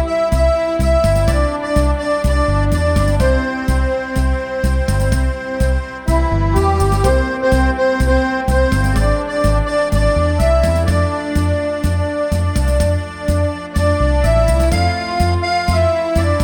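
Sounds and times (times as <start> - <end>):
accordion playing tango: 0.0 - 16.4.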